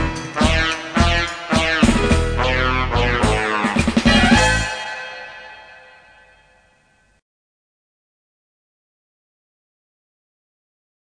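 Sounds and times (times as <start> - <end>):
tango music: 0.0 - 5.8.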